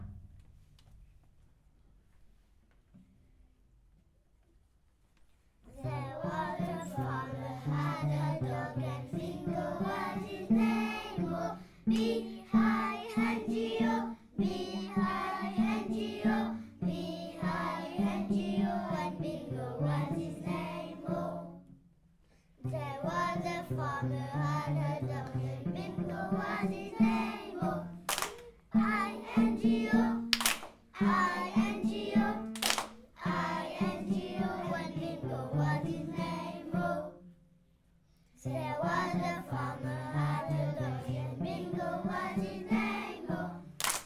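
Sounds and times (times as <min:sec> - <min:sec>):
cello playing: 0:05.8 - 0:21.6, 0:22.6 - 0:28.1, 0:28.7 - 0:30.3, 0:31.0 - 0:32.5, 0:33.2 - 0:37.1, 0:38.5 - 0:43.7.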